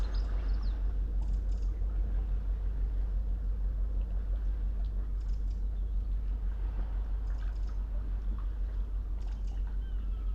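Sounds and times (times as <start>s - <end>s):
smooth sunrise sea below Nothe Fort rumbling: 0.0s - 10.3s.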